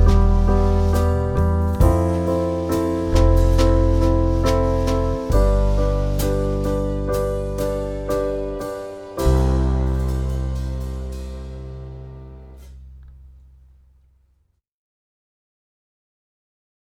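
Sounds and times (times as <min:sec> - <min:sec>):
jazz wind backing track: 0:00.0 - 0:12.9.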